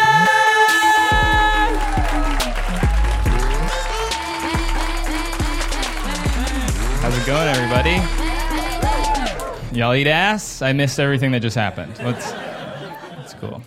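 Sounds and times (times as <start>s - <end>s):
audience applauding: 0.0s - 9.6s
loud walk-on music with a thumping bass: 1.1s - 10.2s
speech: 9.8s - 12.4s, 13.4s - 13.6s
laughter: 11.6s - 13.6s.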